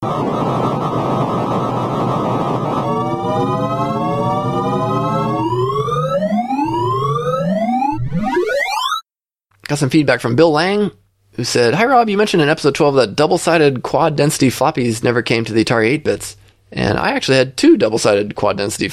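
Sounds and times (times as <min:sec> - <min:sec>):
loud dense buzzy noise from radix sort algorithm visualization: 0:00.0 - 0:08.4
rising pitch sweeps from radix sort algorithm visualization: 0:00.1 - 0:09.0
layered harmonic tones from radix sort algorithm visualization: 0:02.8 - 0:08.9
speech: 0:09.7 - 0:18.9.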